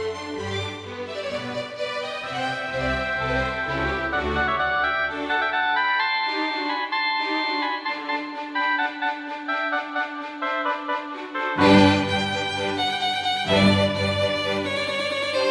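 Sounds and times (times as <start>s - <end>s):
classical violin concerto: 0.0s - 15.5s.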